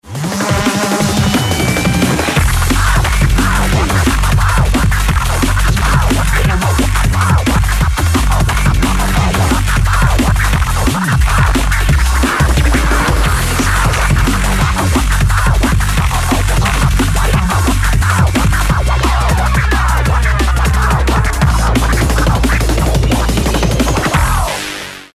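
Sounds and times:
neurofunk turntable scratching: 0.0 - 25.1.

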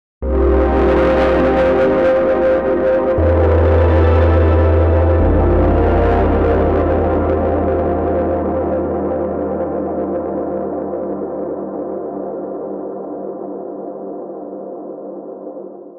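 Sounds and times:
synth pads: 0.2 - 13.0.

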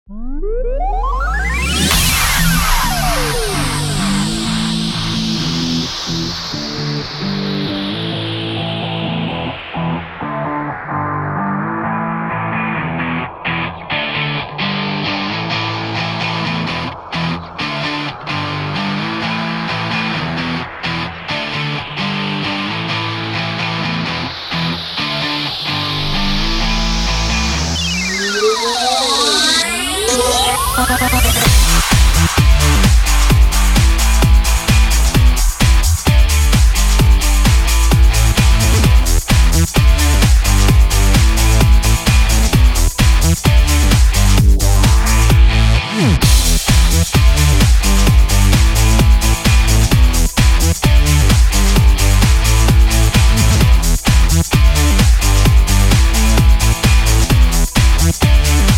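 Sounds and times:
mixed beat: 0.8 - 14.2, 14.9 - 58.7.

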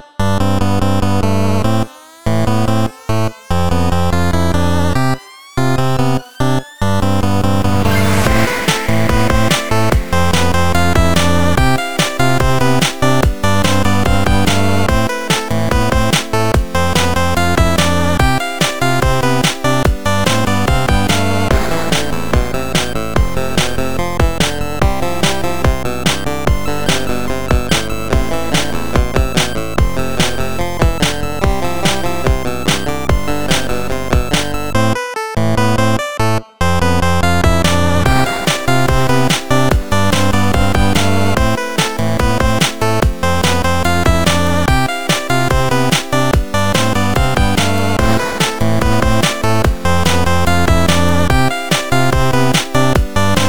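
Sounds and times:
8-bit jump music: 0.4 - 53.4.

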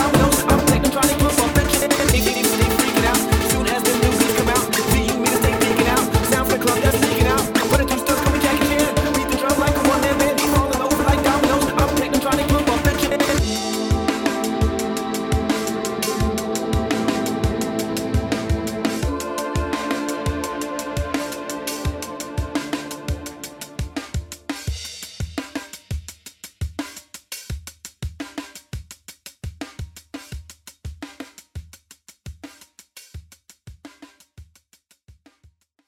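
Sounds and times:
strings: 0.0 - 24.4
breakbeat noise: 0.0 - 26.2.

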